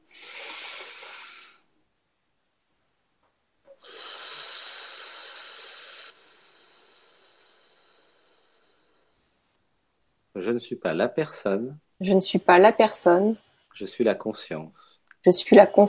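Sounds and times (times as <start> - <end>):
deep breath: 0.0 - 1.7, 3.7 - 9.6
speech: 10.4 - 15.8.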